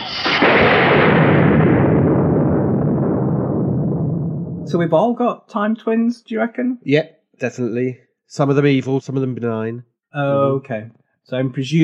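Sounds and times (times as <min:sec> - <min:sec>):
lightning sound effect: 0:00.0 - 0:04.9
speech: 0:04.7 - 0:11.8.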